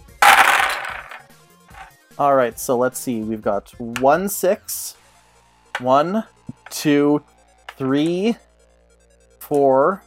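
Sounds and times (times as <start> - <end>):
twelve dice being rolled: 0.0 - 1.9
speech: 2.2 - 5.0, 5.8 - 8.4, 9.5 - 10.0.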